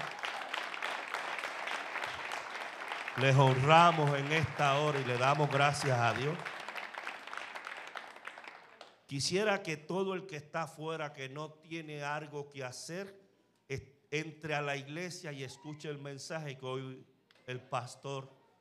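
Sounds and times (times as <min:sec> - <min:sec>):
applause for the pianists: 0:00.0 - 0:09.5
speech: 0:03.2 - 0:06.5, 0:09.1 - 0:18.4.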